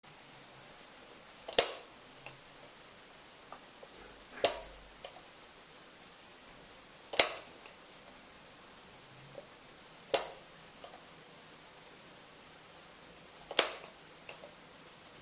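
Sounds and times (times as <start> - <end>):
electric switch being turned on and off: 1.5 - 2.4, 4.2 - 5.2, 7.1 - 7.8, 10.1 - 11.0, 13.5 - 14.5.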